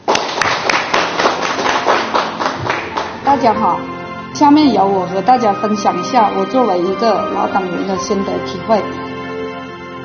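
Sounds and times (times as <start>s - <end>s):
audience applause: 0.0s - 3.3s
speech: 3.3s - 9.1s.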